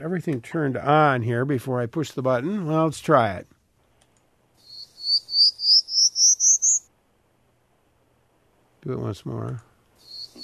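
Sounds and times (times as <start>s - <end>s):
speech: 0.0s - 3.6s, 8.8s - 9.7s
prairie warbler song recording: 4.6s - 6.9s, 10.0s - 10.4s.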